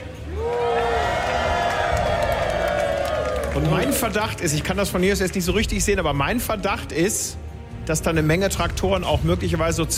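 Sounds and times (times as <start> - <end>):
large crowd cheering and shouting on town square: 0.0 - 4.4
speech: 3.6 - 9.9.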